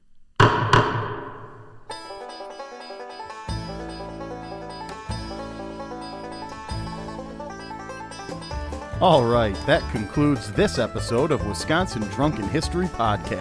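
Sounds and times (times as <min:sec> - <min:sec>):
gavel strikes: 0:00.4 - 0:02.0
melodic music outro with a steady bass line: 0:01.9 - 0:13.3
speech: 0:09.0 - 0:13.3.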